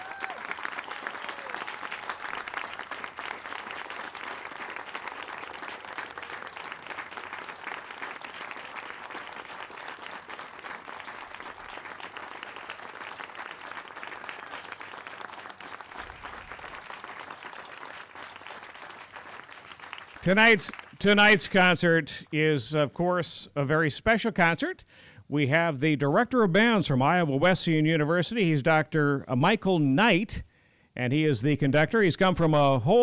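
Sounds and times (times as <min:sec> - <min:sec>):
audience applause: 0:00.0 - 0:21.4
speech: 0:20.2 - 0:33.0.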